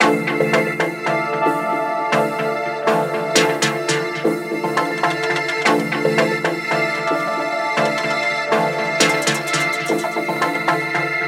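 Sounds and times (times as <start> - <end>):
music: 0.0 - 11.2.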